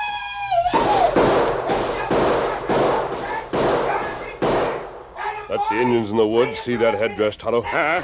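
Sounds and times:
people shouting: 0.0s - 8.0s
rapid gunshots: 0.8s - 5.2s
speech: 5.7s - 8.0s.

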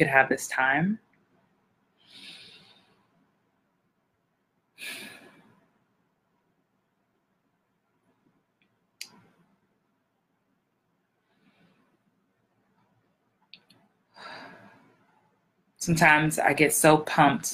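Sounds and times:
speech: 0.0s - 1.1s, 15.8s - 17.5s
deep airy breaths: 2.0s - 3.2s, 11.2s - 12.2s, 14.1s - 15.2s.

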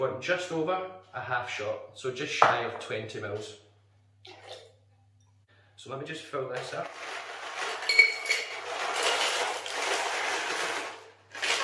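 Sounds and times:
speech: 0.0s - 3.6s, 5.8s - 7.2s
ice clinking into cocktail shaker: 7.6s - 10.8s.

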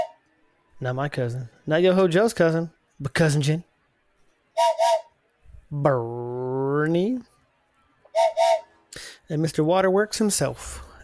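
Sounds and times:
steam train whistle on the Disneyland Railroad: 0.0s - 0.2s, 4.6s - 5.2s, 8.1s - 8.8s
speech: 0.8s - 3.7s, 4.6s - 5.0s, 5.7s - 7.3s, 8.2s - 10.8s.

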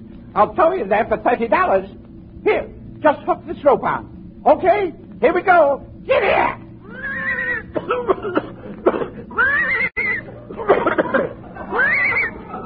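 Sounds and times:
speech: 0.4s - 6.6s, 7.8s - 8.5s
horse whinnying: 6.8s - 7.8s, 9.3s - 10.3s, 11.7s - 12.4s
laughter: 7.9s - 12.6s.

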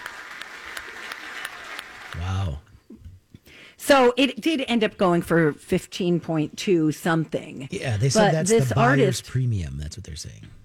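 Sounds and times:
auction crowd clapping: 0.0s - 2.6s
speech: 3.8s - 10.6s.

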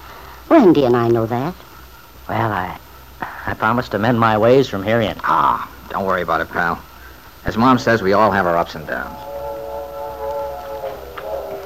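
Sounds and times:
speech: 0.5s - 1.6s, 2.3s - 2.8s, 3.4s - 9.3s
steam train whistle: 8.4s - 11.6s.

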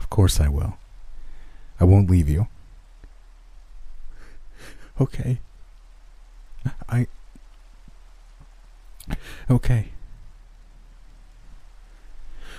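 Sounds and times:
steady soft rain: 0.0s - 12.5s
speech: 0.2s - 0.8s, 1.8s - 2.6s, 4.6s - 5.5s, 6.6s - 7.2s, 9.1s - 10.0s
faint drip-like clicks: 6.6s - 9.2s.

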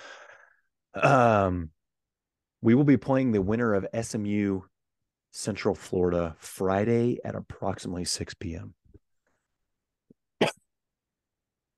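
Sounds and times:
faint breath: 0.0s - 0.7s
speech: 1.0s - 1.8s, 2.6s - 4.7s, 5.3s - 8.8s, 10.4s - 10.6s
man coughing from a tickle in his throat: 10.4s - 10.7s.

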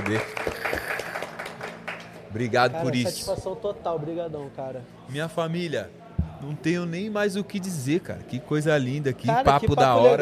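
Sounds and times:
audience applause: 0.0s - 2.7s
speech: 0.1s - 0.8s, 2.3s - 10.1s.

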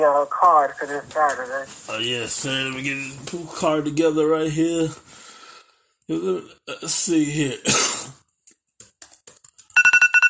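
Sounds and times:
speech: 0.0s - 5.2s, 6.1s - 8.2s
scattered clicks and rustles: 8.4s - 9.8s
electronic alarm beeping: 9.8s - 10.2s.

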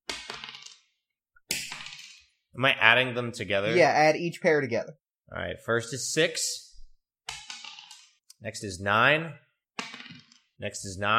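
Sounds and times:
dice rolling: 0.1s - 2.3s, 7.3s - 8.2s, 9.8s - 10.5s
speech: 2.6s - 6.7s, 8.4s - 9.4s, 10.6s - 11.1s.

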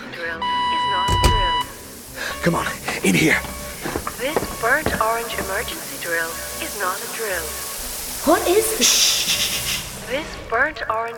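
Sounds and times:
voices: 0.0s - 11.1s
speech: 0.2s - 1.0s, 2.4s - 3.5s, 4.2s - 7.6s, 8.2s - 11.1s
security hand scanner beep: 0.4s - 6.6s.

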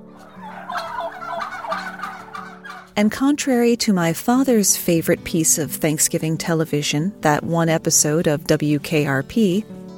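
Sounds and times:
wild turkeys calling in a rapid rattling gobble: 0.1s - 3.0s
speech: 3.0s - 9.8s.

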